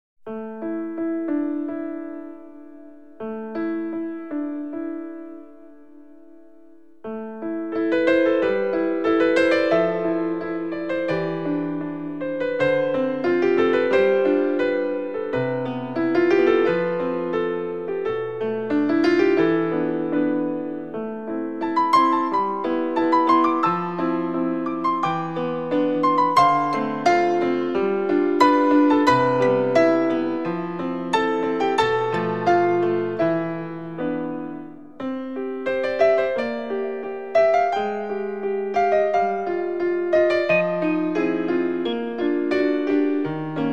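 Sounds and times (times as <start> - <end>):
piano nocturne: 0.2 - 43.7.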